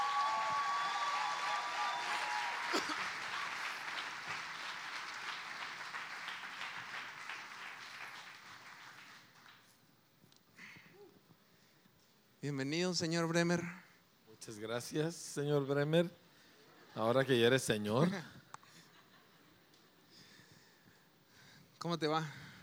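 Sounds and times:
audience applause: 0.0 - 9.8
speech: 12.5 - 13.8, 14.4 - 16.2, 17.0 - 18.4, 21.8 - 22.4.

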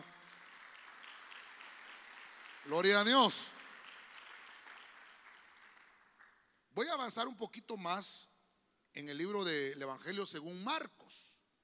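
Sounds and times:
audience clapping loudly: 0.0 - 6.5
speech: 2.6 - 3.6, 6.8 - 8.3, 9.0 - 11.3.

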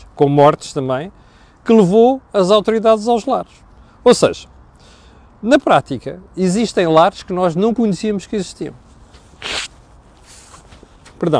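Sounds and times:
speech: 0.2 - 4.5, 5.4 - 8.8, 11.2 - 11.3
person blowing nose: 9.4 - 10.6.

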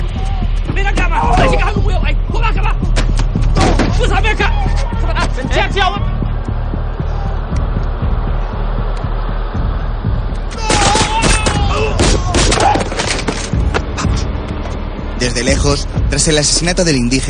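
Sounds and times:
low rumbling backdrop of gunfire: 0.0 - 17.2
speech: 5.4 - 6.1, 15.4 - 17.2.

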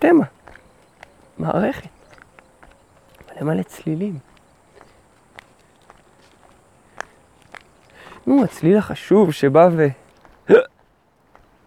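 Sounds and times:
speech: 0.0 - 0.4, 1.4 - 2.0, 3.4 - 4.3, 8.2 - 10.6
faint breathy sounds: 0.5 - 9.1
loud hiccup: 10.5 - 10.7.

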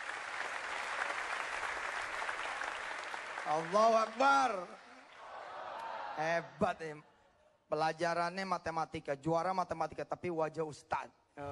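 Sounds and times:
crowd applauding: 0.0 - 6.1
speech: 3.5 - 4.8, 6.2 - 7.1, 7.7 - 11.5.

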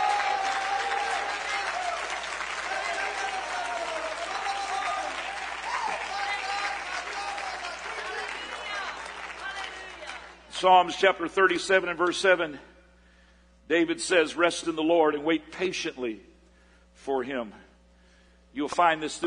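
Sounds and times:
audience clapping hands: 0.0 - 10.5
speech: 10.6 - 12.7, 13.7 - 16.3, 17.0 - 17.6, 18.5 - 19.2.

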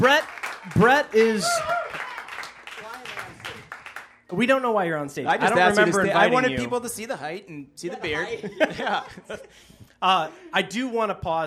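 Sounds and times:
speech: 0.0 - 2.0, 4.3 - 11.4
audience round of applause: 0.0 - 4.2
laughter: 8.1 - 9.7.

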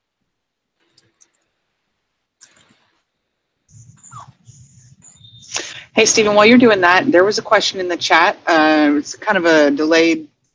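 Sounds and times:
computer mouse clicking: 0.9 - 1.4, 2.4 - 3.0
speech: 6.0 - 10.3.

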